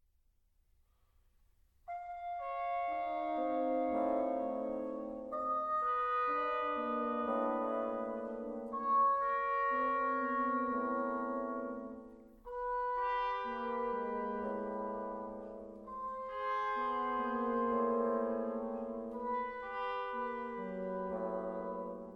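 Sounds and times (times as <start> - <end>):
brass quintet: 1.9 - 22.1.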